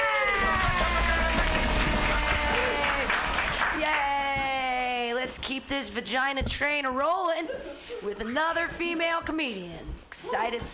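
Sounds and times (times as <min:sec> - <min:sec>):
audience clapping: 0:00.0 - 0:04.6
speech: 0:05.5 - 0:10.7.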